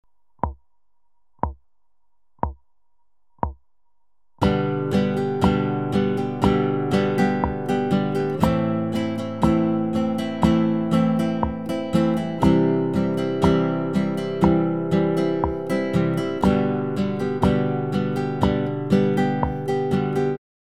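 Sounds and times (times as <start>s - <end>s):
instrument strumming: 4.4s - 20.4s.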